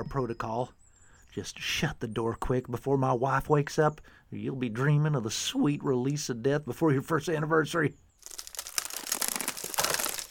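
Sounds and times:
speech: 0:00.0 - 0:08.4
something rattling in the bushes: 0:08.2 - 0:10.2.

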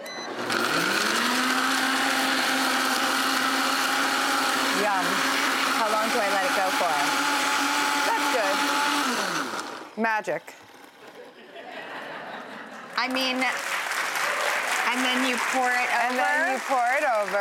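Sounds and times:
kitchen blender blending ingredients: 0:00.3 - 0:11.3, 0:14.6 - 0:17.4
speech: 0:10.0 - 0:10.6, 0:13.0 - 0:13.7, 0:14.9 - 0:17.4
laughter: 0:11.0 - 0:13.0.

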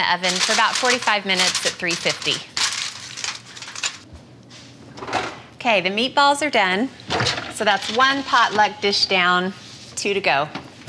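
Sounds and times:
speech: 0:00.0 - 0:02.5, 0:05.6 - 0:07.0, 0:07.6 - 0:10.6
aluminum foil crinkling over a dish: 0:00.0 - 0:04.1, 0:07.6 - 0:08.8.

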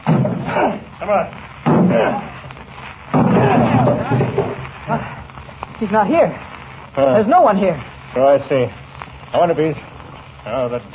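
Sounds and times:
sustained noisy clatter: 0:00.0 - 0:10.9
speech: 0:01.1 - 0:02.4, 0:03.2 - 0:05.2, 0:05.8 - 0:09.8, 0:10.4 - 0:10.9
door being smashed open: 0:03.1 - 0:04.6.

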